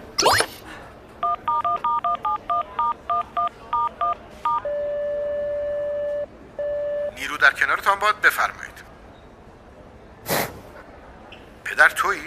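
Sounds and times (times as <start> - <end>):
telephone keypad touch-tone beeps: 1.2 - 7.2
speech: 7.4 - 8.8, 11.8 - 12.2.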